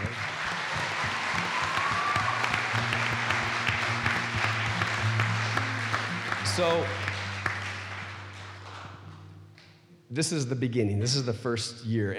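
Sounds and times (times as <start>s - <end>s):
audience applause: 0.0s - 9.3s
speech: 6.6s - 7.1s, 10.1s - 12.1s.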